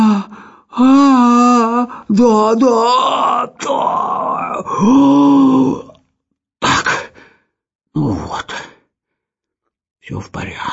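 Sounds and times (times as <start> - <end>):
person groaning and grunting from a chimney: 0.0 - 6.0
speech: 2.1 - 5.8, 10.1 - 10.7.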